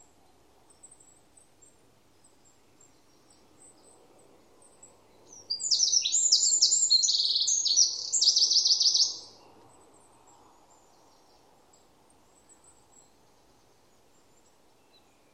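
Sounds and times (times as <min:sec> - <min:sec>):
bird high thin chirps: 0:05.5 - 0:09.3.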